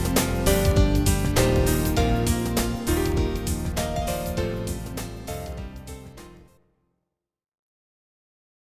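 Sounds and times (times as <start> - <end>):
retrowave music on Amiga: 0.0 - 6.4.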